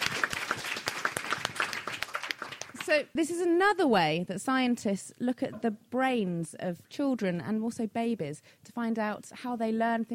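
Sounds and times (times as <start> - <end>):
audience applause: 0.0 - 2.9
speech: 2.9 - 10.1.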